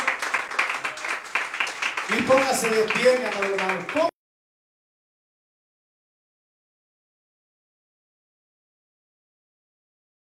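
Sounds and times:
audience clapping: 0.0s - 4.1s
speech: 2.1s - 4.1s.

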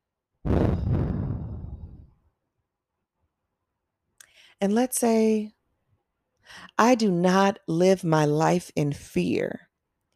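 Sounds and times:
deep breath in a guided breathing exercise: 0.5s - 2.2s
speech: 4.6s - 5.6s, 6.5s - 9.7s.

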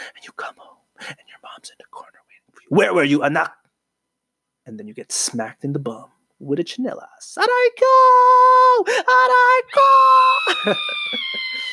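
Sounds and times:
speech: 0.2s - 3.6s, 4.7s - 11.7s
long scream: 9.7s - 11.7s.

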